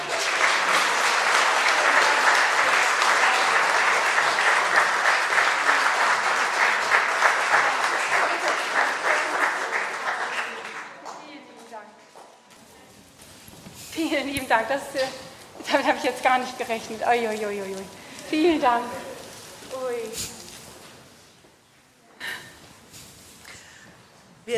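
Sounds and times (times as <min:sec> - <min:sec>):
audience applause: 0:00.0 - 0:11.3
speech: 0:14.6 - 0:19.1.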